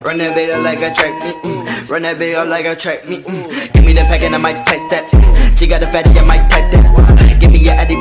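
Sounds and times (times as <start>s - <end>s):
trap beat: 0.0s - 7.9s.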